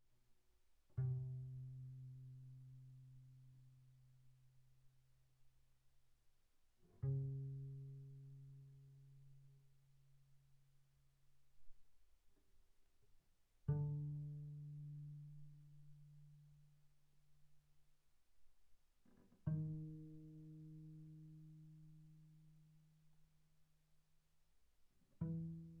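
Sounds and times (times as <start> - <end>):
double bass pizzicato on the G string pianissimo: 0.9 - 4.5, 6.8 - 10.1, 13.6 - 17.1, 19.2 - 23.1, 25.0 - 25.7.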